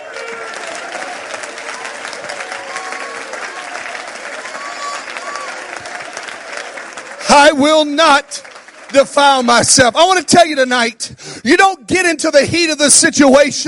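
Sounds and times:
audience clapping hands: 0:00.0 - 0:10.7
speech: 0:07.3 - 0:13.6.

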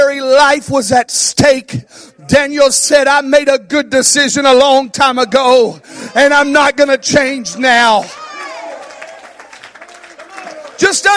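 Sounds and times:
speech: 0:00.4 - 0:08.2, 0:10.8 - 0:11.1
audience clapping: 0:08.0 - 0:11.1.

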